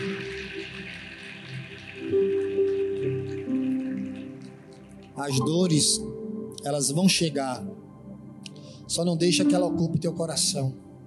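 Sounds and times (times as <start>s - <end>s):
audience applause: 0.0s - 5.4s
speech: 5.2s - 7.8s, 8.9s - 10.9s.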